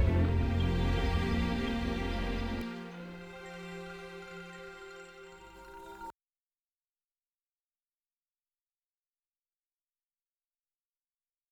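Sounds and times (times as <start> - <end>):
dark ambient film music: 0.0 - 6.1.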